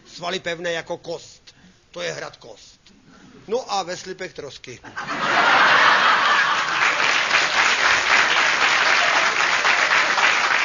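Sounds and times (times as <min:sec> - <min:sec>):
speech: 0:00.2 - 0:01.3, 0:02.0 - 0:05.6
laughter: 0:04.8 - 0:07.3
audience applause: 0:05.6 - 0:10.6.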